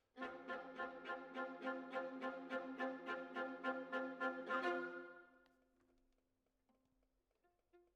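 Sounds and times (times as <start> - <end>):
violas: 0.2 - 5.5.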